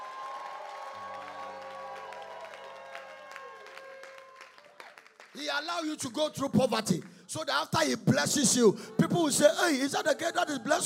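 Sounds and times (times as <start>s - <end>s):
audience clapping and shouting: 0.0s - 7.2s
speech: 5.4s - 10.8s.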